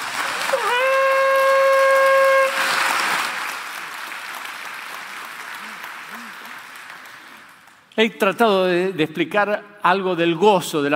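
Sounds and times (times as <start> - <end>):
crowd clapping: 0.0 - 8.3
loud sustained trumpet note: 0.8 - 2.8
speech: 8.0 - 10.9.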